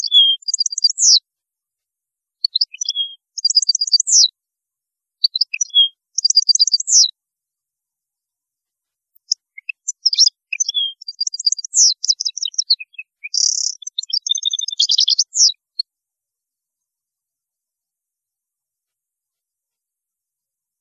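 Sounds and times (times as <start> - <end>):
European goldfinch singing: 0.0 - 1.2, 2.4 - 4.3, 5.2 - 7.1, 9.2 - 15.6.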